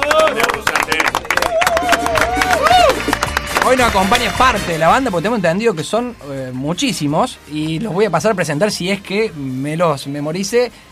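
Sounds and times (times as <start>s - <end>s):
people whooping and cheering: 0.0s - 3.3s
small group clapping for band in studio: 0.0s - 4.7s
speech: 3.7s - 10.9s.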